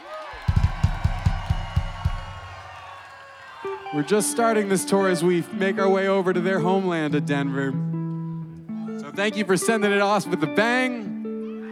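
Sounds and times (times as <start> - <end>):
audience cheering and clapping: 0.0 - 6.4
heavy thumps like stomps: 0.4 - 3.0
speech: 3.9 - 7.9, 9.2 - 11.1.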